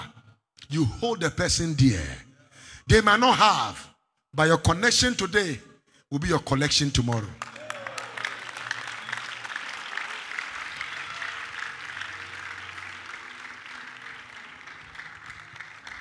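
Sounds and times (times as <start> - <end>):
speech: 0.7 - 2.3, 2.9 - 7.5
crowd clapping: 7.1 - 15.9.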